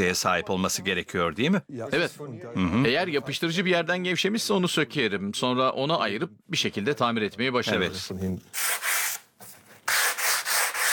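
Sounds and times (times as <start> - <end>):
speech: 0.0 - 8.8
wood being sanded during furniture restoration: 9.9 - 10.9.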